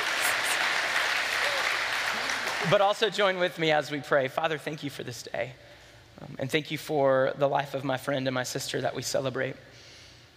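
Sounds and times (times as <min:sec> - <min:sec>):
crowd clapping: 0:00.0 - 0:03.1
speech: 0:02.6 - 0:09.8.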